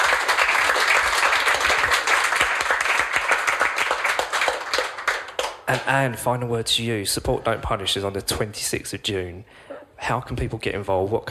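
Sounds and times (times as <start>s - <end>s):
crowd applause: 0.0s - 5.9s
speech: 5.7s - 11.3s.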